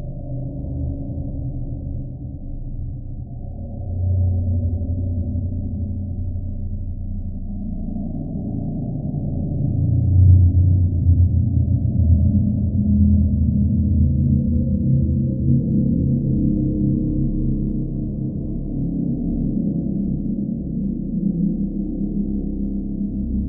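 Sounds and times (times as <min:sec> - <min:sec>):
cold dark demonic horror cave drone: 0:00.0 - 0:23.4.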